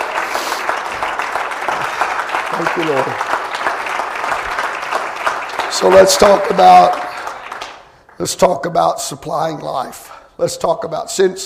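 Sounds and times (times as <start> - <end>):
audience clapping hands: 0.0 - 8.8
speech: 2.6 - 3.3, 5.7 - 7.0, 8.2 - 11.4.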